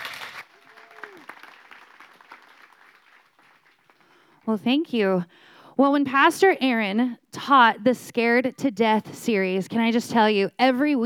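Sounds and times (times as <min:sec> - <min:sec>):
audience applause: 0:00.0 - 0:04.3
speech: 0:04.5 - 0:11.0.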